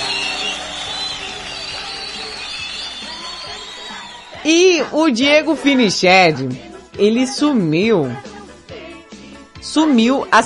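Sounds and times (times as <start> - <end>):
crowd applause: 0.0 - 4.9
voices shouting: 0.0 - 5.1
crowd cheering: 0.0 - 5.7
speech: 4.4 - 8.3, 9.6 - 10.4.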